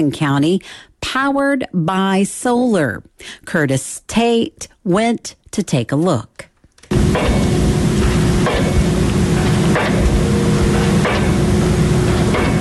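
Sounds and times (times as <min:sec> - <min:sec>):
speech: 0:00.0 - 0:06.4
heavy construction equipment engine drone: 0:06.9 - 0:12.6
loud metallic bangs: 0:06.9 - 0:12.6.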